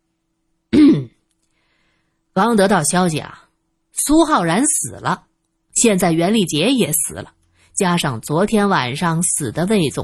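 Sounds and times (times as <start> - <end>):
throat clearing: 0.7 - 1.2
speech: 2.4 - 3.4, 4.0 - 10.0.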